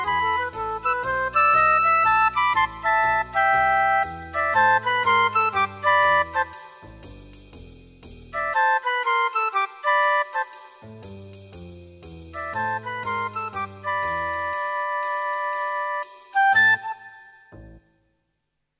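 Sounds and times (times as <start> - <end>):
two flutes playing: 0.0 - 7.0, 8.4 - 10.9, 12.4 - 17.6.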